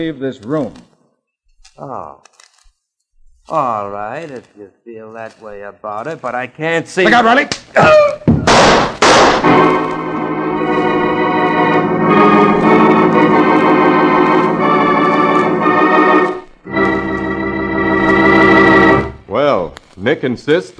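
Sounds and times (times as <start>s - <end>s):
speech: 0.0s - 0.9s, 1.8s - 2.3s, 3.5s - 8.2s, 20.0s - 20.7s
gunshots in a radio drama: 8.3s - 9.9s
dramatic music chord: 9.4s - 19.2s.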